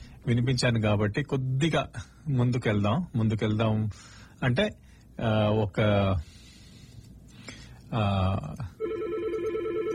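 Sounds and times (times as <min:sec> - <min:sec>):
speech: 0:00.2 - 0:06.4, 0:07.9 - 0:08.7
telephone ringing as a caller phones in to a radio show: 0:08.8 - 0:09.9.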